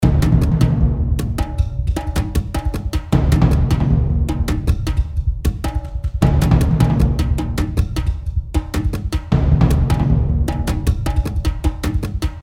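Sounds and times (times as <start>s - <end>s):
action drums: 0.0s - 12.4s.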